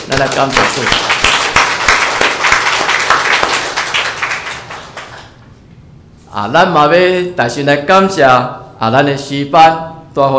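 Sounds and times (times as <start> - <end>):
audience applause: 0.0 - 5.3
speech: 0.1 - 1.2, 6.3 - 10.3.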